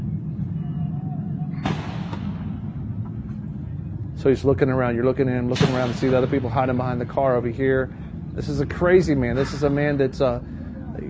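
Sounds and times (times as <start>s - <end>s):
steady low rumbling noise: 0.0s - 11.0s
police gunshots: 1.6s - 2.7s
speech: 4.2s - 10.5s.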